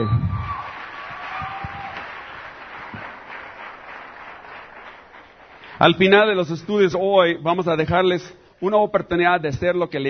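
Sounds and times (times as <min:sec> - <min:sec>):
voices and whoops: 0:00.0 - 0:02.2
audience applause: 0:00.0 - 0:06.1
speech: 0:05.8 - 0:10.0.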